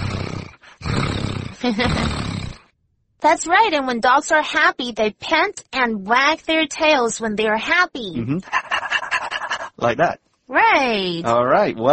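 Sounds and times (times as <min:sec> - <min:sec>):
person imitating a happy cat: 0:00.0 - 0:02.6, 0:08.2 - 0:08.5
speech: 0:01.6 - 0:02.2, 0:03.2 - 0:08.6, 0:09.8 - 0:11.9.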